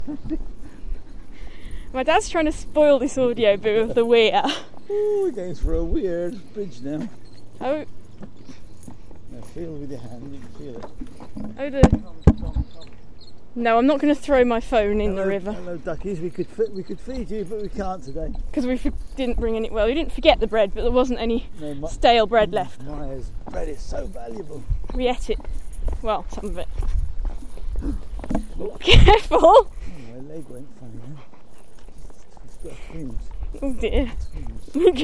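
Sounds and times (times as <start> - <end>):
birdsong: 0.0 - 35.0
people discussing fruit: 1.9 - 7.9, 9.4 - 10.8, 11.6 - 12.9, 13.6 - 25.4, 26.0 - 26.7, 27.8 - 31.2, 32.7 - 35.0.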